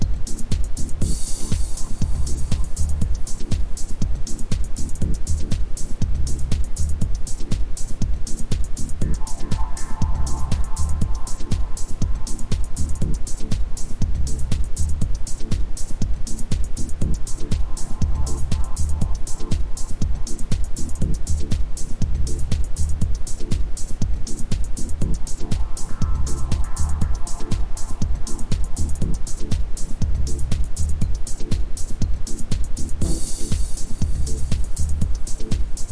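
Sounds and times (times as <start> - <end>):
ambient sound: 0.0 - 35.9
isochronic tones: 0.0 - 35.9.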